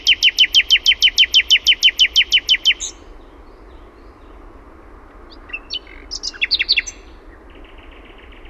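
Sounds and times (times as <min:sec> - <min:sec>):
Common nightingale singing in Finland: 0:00.0 - 0:04.5, 0:05.2 - 0:08.4.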